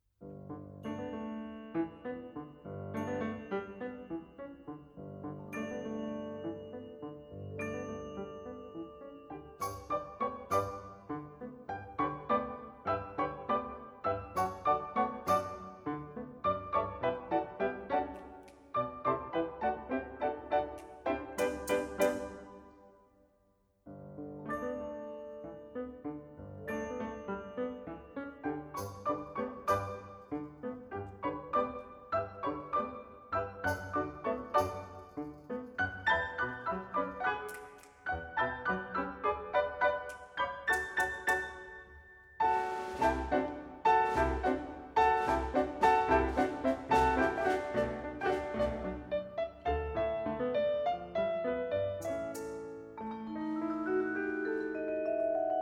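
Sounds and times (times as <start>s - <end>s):
symphonic cha cha piece: 0.3s - 22.9s, 24.3s - 55.5s.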